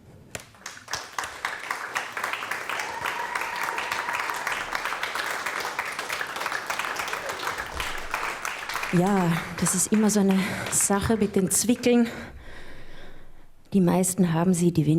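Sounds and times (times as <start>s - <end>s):
audience clapping: 0.3s - 12.0s
speech: 9.0s - 12.4s, 13.7s - 14.9s.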